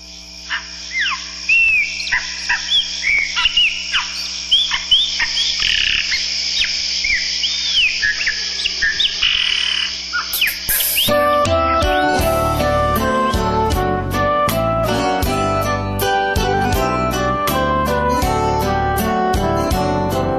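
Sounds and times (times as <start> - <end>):
many birds chirping and twittering in a Brazilian song: 0.0 - 12.7
person singing with birds in a Brazilian song: 11.1 - 20.3.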